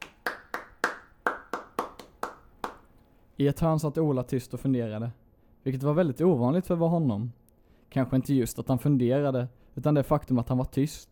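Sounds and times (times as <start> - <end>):
sharp hand claps: 0.0 - 3.0
speech: 3.4 - 11.1.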